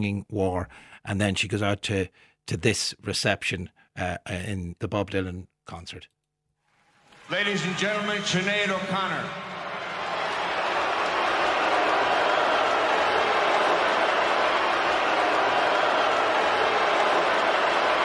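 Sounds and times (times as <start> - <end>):
speech: 0.0 - 6.2, 7.3 - 9.5
large crowd booing and cheering: 7.1 - 18.0.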